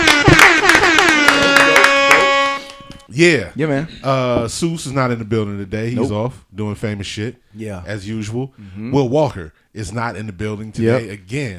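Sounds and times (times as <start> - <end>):
hand clapping: 0.0 - 3.1
steady ringing musical tone: 0.9 - 3.1
speech: 3.2 - 11.5.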